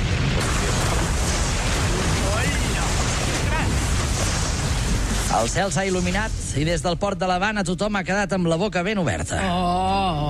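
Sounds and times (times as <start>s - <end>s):
large explosion on a ship: 0.0s - 7.9s
speech: 5.4s - 10.2s.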